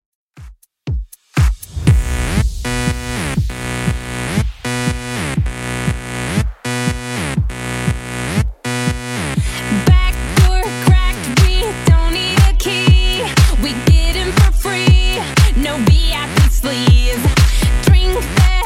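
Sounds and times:
Redrum drum machine beat at 120 BPM: 0.3 - 18.6.

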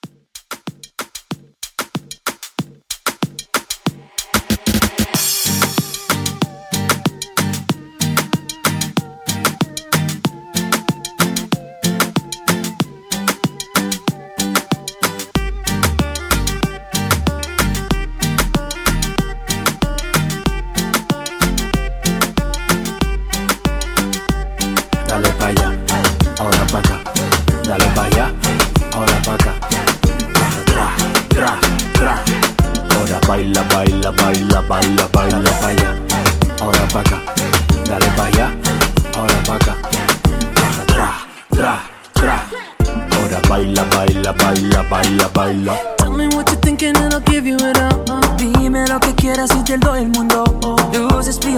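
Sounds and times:
Latin reggaeton drum beat: 0.0 - 51.5.

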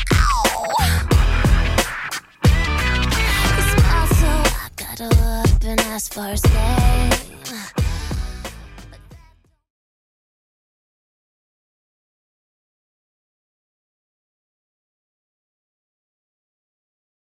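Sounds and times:
drum beat: 0.0 - 9.3.

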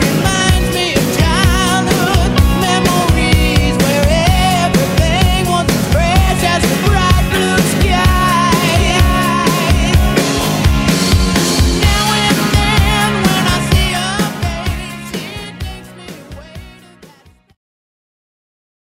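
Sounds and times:
epic intro music: 1.1 - 16.0.

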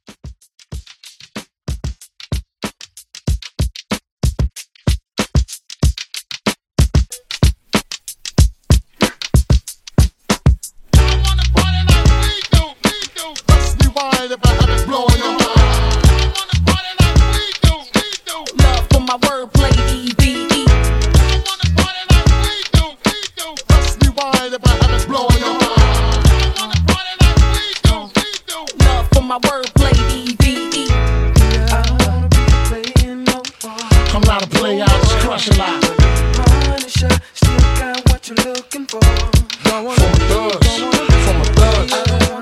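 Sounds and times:
1990s old school hip hop beat: 0.0 - 42.4.

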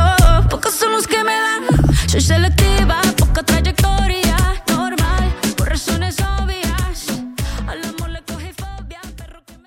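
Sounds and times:
drums: 0.0 - 0.6, 1.7 - 9.6.

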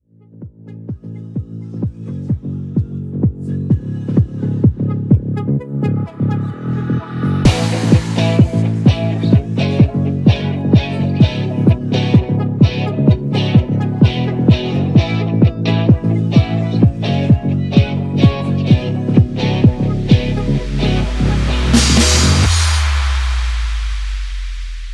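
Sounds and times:
epic a cappella singing: 0.9 - 23.4.

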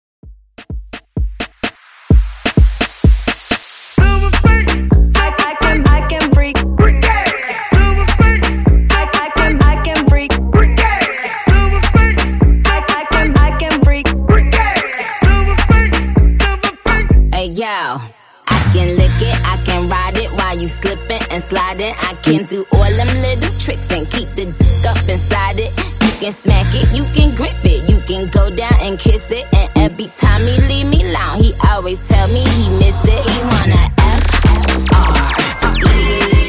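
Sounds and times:
Top 40 hype pop music mashup: 0.6 - 36.4.

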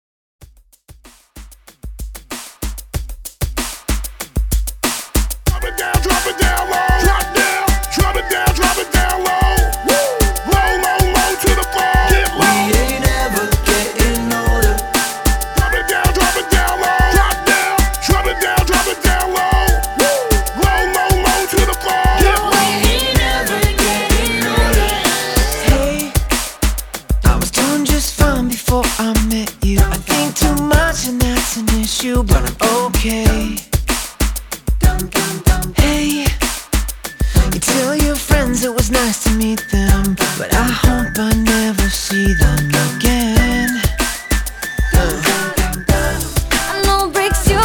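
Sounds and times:
hype beatboxing: 1.8 - 47.6.

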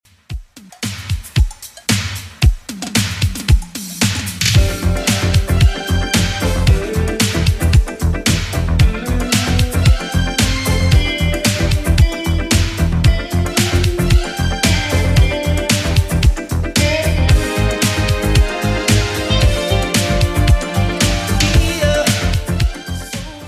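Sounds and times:
80s style music: 0.1 - 23.4.

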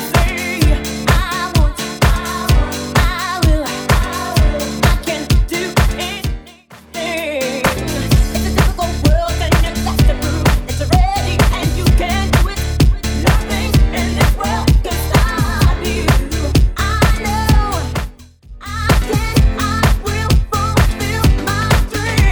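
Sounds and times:
90s classic dance music beat at 128bpm: 0.0 - 22.2.

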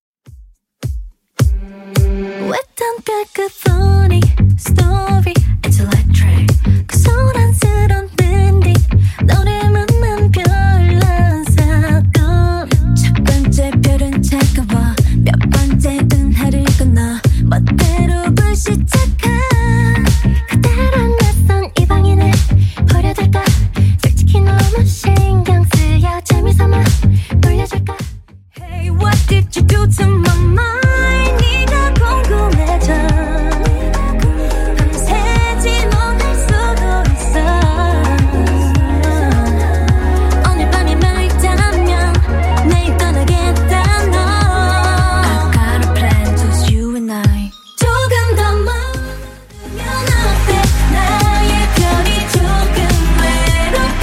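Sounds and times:
Top40 pop track at 106 bpm: 0.8 - 54.0.

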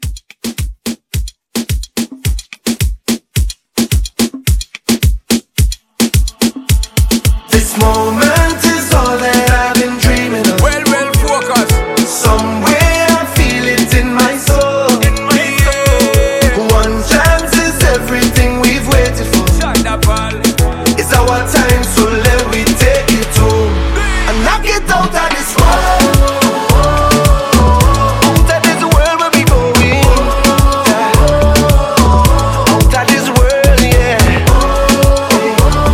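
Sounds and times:
moombahton music at 108 bpm: 0.0 - 35.9.

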